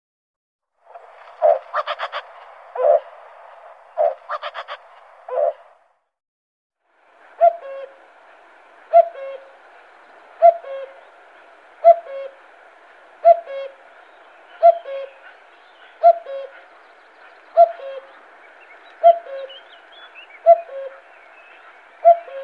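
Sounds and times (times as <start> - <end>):
common cuckoo calling its two-note cu-coo: 4.0 - 5.6, 7.3 - 8.1, 8.8 - 22.4.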